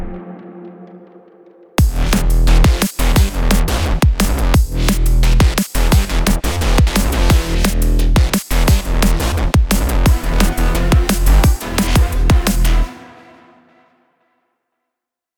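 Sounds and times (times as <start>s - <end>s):
drum machine percussion: 1.8s - 12.9s.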